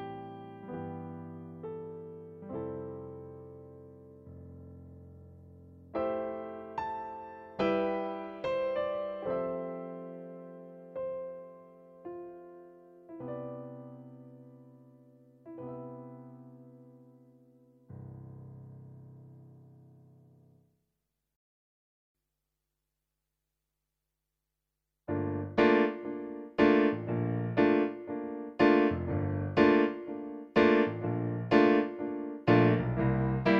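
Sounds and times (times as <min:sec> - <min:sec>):
natural grand piano voice on a digital piano: 0:00.0 - 0:20.4, 0:25.1 - 0:33.5.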